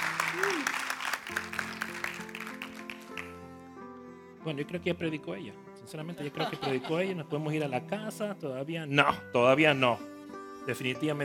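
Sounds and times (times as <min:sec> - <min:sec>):
audience applause: 0:00.0 - 0:03.4
speech: 0:04.4 - 0:11.2
laughter: 0:06.1 - 0:07.3.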